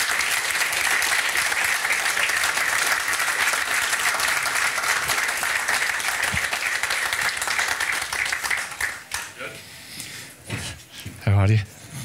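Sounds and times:
sustained applause from a large audience: 0.0s - 9.4s
speech: 11.4s - 11.7s.

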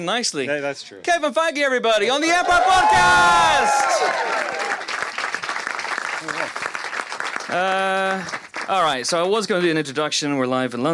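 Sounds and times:
speech: 0.0s - 4.9s, 7.5s - 10.9s
audience applause: 2.6s - 9.2s.

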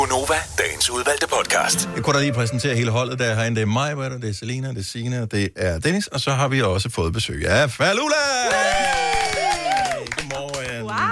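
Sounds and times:
speech: 0.3s - 9.6s
small studio team clapping to welcome a guest: 8.4s - 11.1s.

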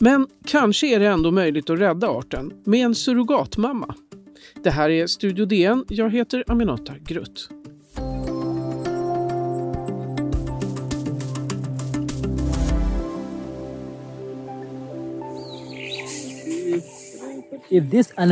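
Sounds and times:
speech: 0.0s - 4.0s, 4.6s - 7.6s, 17.7s - 18.3s
rhinoceroses grazing with tearing and crunching: 7.9s - 13.0s, 14.3s - 18.3s
birds chirping: 8.0s - 12.2s, 12.8s - 18.3s.

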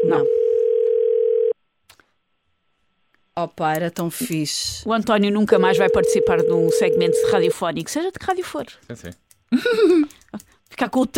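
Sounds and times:
telephone ringing tone while calling someone: 0.0s - 1.6s, 5.6s - 7.6s
speech: 3.4s - 11.1s.

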